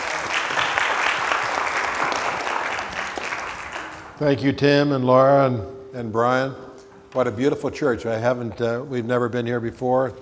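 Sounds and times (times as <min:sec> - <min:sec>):
audience hand clapping: 0:00.0 - 0:04.2
speech: 0:04.2 - 0:10.2.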